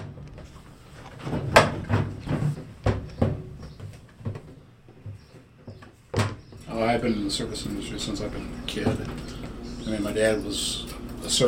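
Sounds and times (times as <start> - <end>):
washing machine clunks and knocks: 0.0 - 6.7
washing machine rumbling: 0.0 - 11.4
speech: 7.0 - 9.3, 9.9 - 11.4.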